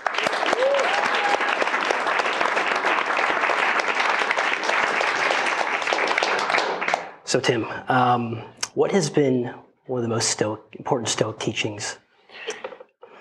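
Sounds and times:
audience applause welcoming Tim Ferriss: 0:00.0 - 0:07.2
speech: 0:07.3 - 0:12.6.

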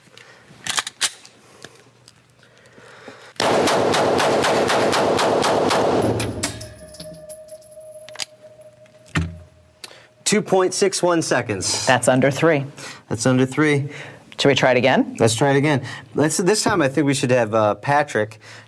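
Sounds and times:
rapid burst of gunfire: 0:03.4 - 0:06.4
speech: 0:10.3 - 0:18.6.

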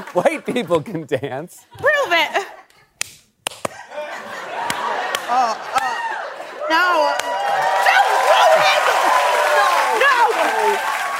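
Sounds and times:
laughter: 0:00.0 - 0:01.2, 0:03.7 - 0:07.1
speech: 0:00.1 - 0:02.4
crowd pity clapping: 0:04.6 - 0:11.1
voices and whoops: 0:05.2 - 0:11.1.

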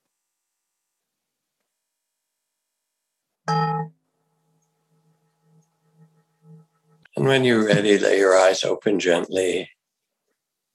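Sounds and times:
meditation bell ringing: 0:03.5 - 0:03.9
speech: 0:07.2 - 0:09.7.

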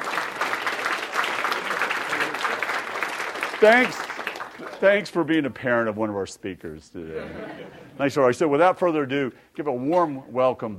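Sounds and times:
audience applause: 0:00.0 - 0:05.1
speech: 0:03.6 - 0:04.1, 0:04.8 - 0:10.7
laughter: 0:07.0 - 0:08.2.

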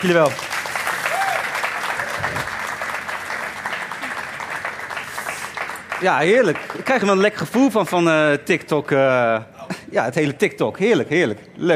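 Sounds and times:
speech: 0:00.0 - 0:00.5, 0:06.0 - 0:11.7
audience applause: 0:00.0 - 0:07.5.

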